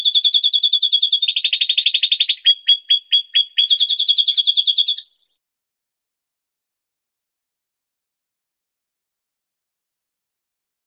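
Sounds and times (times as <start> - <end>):
songbird rattling high trill: 0.0 - 5.2.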